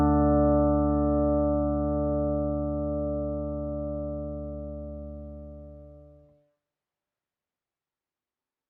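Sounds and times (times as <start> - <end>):
crunch electric guitar through tube mic preamp, dry and wet: 0.0 - 5.7.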